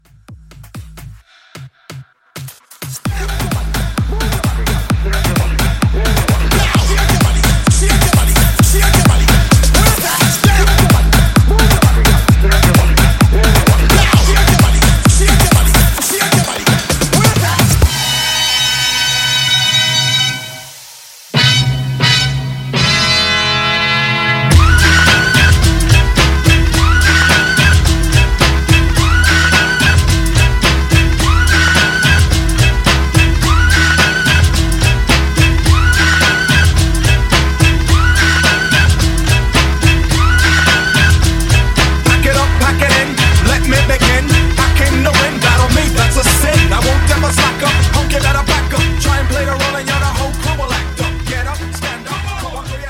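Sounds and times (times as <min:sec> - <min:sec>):
electronic dance music: 0:00.0 - 0:52.8.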